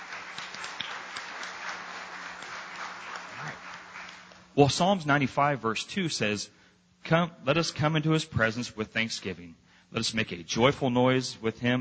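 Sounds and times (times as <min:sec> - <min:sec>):
audience clapping for a band: 0:00.0 - 0:04.6
speech: 0:04.6 - 0:11.7.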